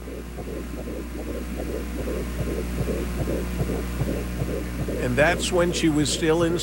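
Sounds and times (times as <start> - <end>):
fetal heartbeat recording: 0.0 - 6.6
low electrical hum: 0.0 - 6.6
speech: 0.8 - 6.6.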